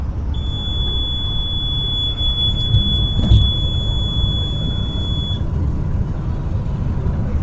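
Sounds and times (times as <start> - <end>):
low rumble of the moving bus: 0.0 - 7.4
bus speeding alarm beeping: 0.2 - 5.6.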